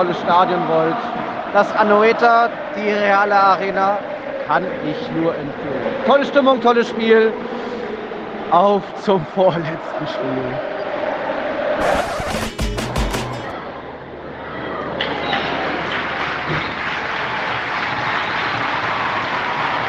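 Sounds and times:
speech: 0:00.0 - 0:07.6, 0:08.5 - 0:10.7, 0:11.8 - 0:12.4
large stadium crowd cheering and clapping: 0:11.5 - 0:13.8, 0:14.8 - 0:19.8
sharp rapid claps or bangs: 0:11.8 - 0:13.5.

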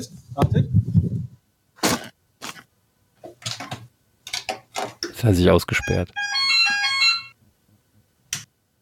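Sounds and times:
speech: 0:00.0 - 0:00.8, 0:05.2 - 0:06.2
doorbell ringtone: 0:05.8 - 0:07.4.

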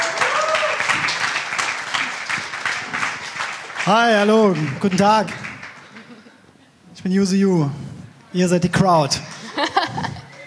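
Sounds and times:
audience applause: 0:00.0 - 0:06.2
speech: 0:03.9 - 0:05.4, 0:07.0 - 0:09.3
laughter: 0:05.8 - 0:06.8, 0:09.3 - 0:10.4.

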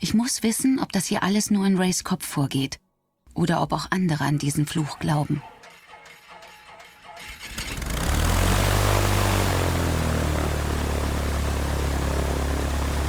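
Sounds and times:
speech: 0:00.0 - 0:02.8, 0:03.4 - 0:05.5
small propeller airplane in flight from Tobago to Trinidad: 0:07.4 - 0:13.0.

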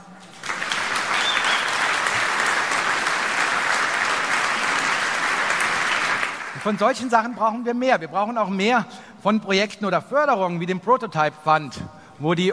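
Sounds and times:
audience applause: 0:00.0 - 0:07.1
speech: 0:06.6 - 0:12.5.

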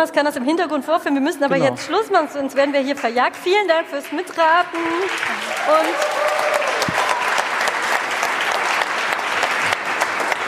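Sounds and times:
speech: 0:00.0 - 0:06.6
audience applause at a gadget-guessing event: 0:02.4 - 0:10.4.

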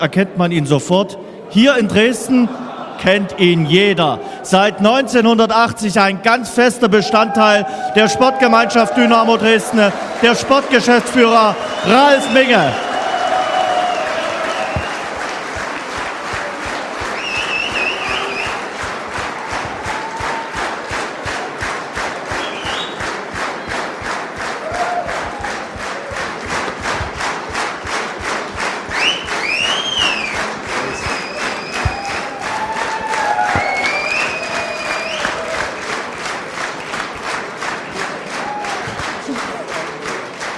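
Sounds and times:
speech: 0:00.0 - 0:12.9
laughter: 0:01.5 - 0:34.0, 0:37.9 - 0:40.4
stadium crowd applauding and cheering: 0:01.6 - 0:40.5
shouts: 0:06.8 - 0:21.4, 0:24.6 - 0:26.3, 0:28.9 - 0:35.7, 0:38.3 - 0:39.6
whistles: 0:10.2 - 0:15.6, 0:16.3 - 0:20.7, 0:22.3 - 0:23.8, 0:28.9 - 0:35.8.

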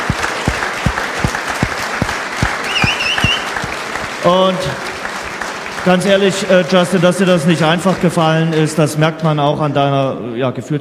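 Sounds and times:
audience applause: 0:00.0 - 0:08.5
speech: 0:04.2 - 0:04.9, 0:05.8 - 0:10.7.

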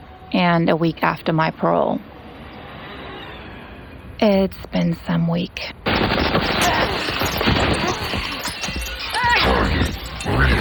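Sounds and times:
speech: 0:00.4 - 0:02.2, 0:04.2 - 0:07.0
gunfire in an action scene: 0:05.9 - 0:09.2
crashing impacts: 0:05.9 - 0:10.5
people shouting: 0:06.6 - 0:10.5.

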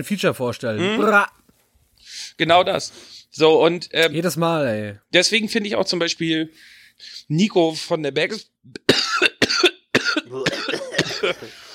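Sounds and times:
speech: 0:00.0 - 0:01.4, 0:02.0 - 0:08.8, 0:11.2 - 0:11.7
person coughing in a coughing fit: 0:08.8 - 0:11.7.

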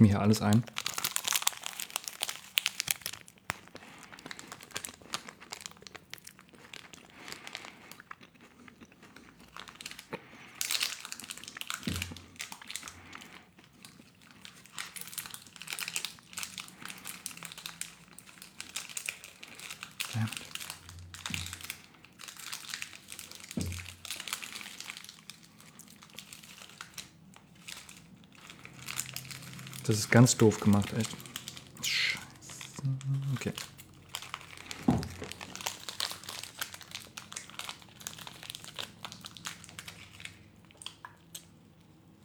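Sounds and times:
speech: 0:00.0 - 0:00.8, 0:29.9 - 0:31.3
chocolate bar plastic wrapper crinkling: 0:00.0 - 0:42.0.

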